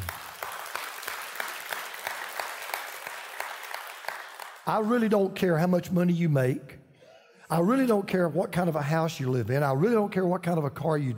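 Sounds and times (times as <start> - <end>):
audience applause: 0.0 - 4.7
speech: 4.7 - 6.8, 7.5 - 11.1.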